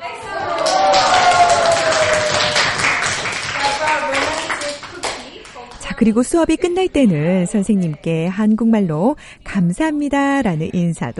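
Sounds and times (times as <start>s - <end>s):
students clapping loudly: 0.3s - 5.9s
speech: 6.0s - 11.1s.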